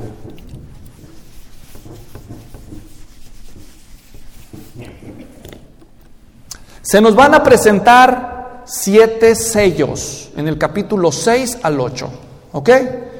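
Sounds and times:
eraser rubbing a drawing off a board: 0.0s - 6.0s
speech: 6.8s - 13.1s.

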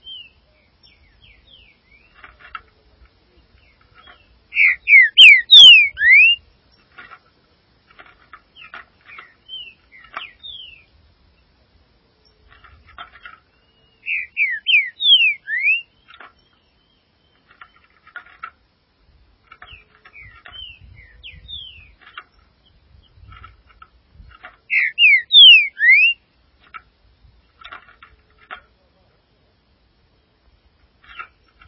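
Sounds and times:
background hiss: 0.0s - 31.6s
green-winged saltator whistling: 4.5s - 6.4s, 14.0s - 15.9s, 24.7s - 26.2s.

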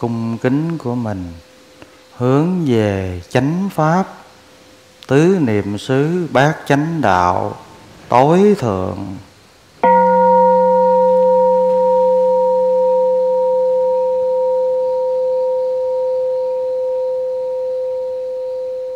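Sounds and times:
speech: 0.0s - 1.5s, 2.2s - 4.2s, 5.1s - 9.3s
temple bell ringing: 9.8s - 18.9s.

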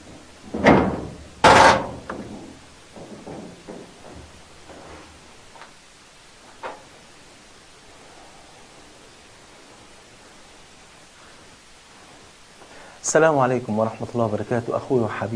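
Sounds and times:
house door opening with thuds: 0.1s - 4.3s
speech: 13.1s - 15.3s.

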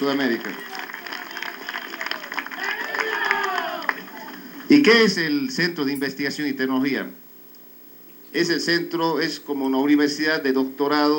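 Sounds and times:
speech: 0.0s - 0.8s, 4.7s - 7.2s, 8.3s - 11.1s
applause for President Morales: 0.0s - 4.9s.

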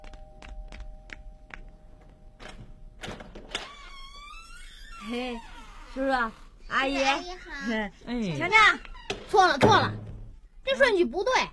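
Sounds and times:
door being opened for visitors: 2.4s - 6.0s, 8.7s - 10.3s
drawn-out high door squeak: 2.4s - 6.4s, 8.6s - 10.1s
speech: 5.1s - 10.0s, 10.6s - 11.5s.

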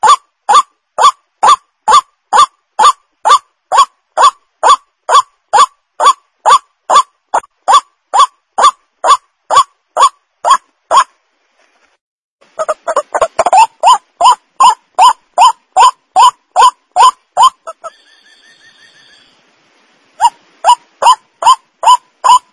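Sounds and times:
white-breasted waterhen lure call: 0.0s - 11.1s, 12.5s - 19.5s, 20.2s - 22.5s.

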